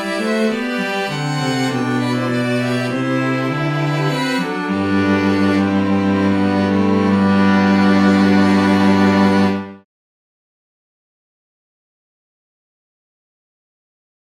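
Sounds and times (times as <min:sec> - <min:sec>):
string quartet playing: 0:00.0 - 0:09.9.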